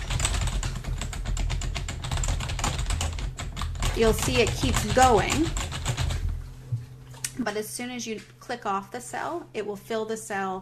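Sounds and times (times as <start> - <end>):
fast typing on a computer keyboard into spreadsheet cells: 0.0 - 6.2
speech: 4.0 - 5.7, 7.4 - 10.5.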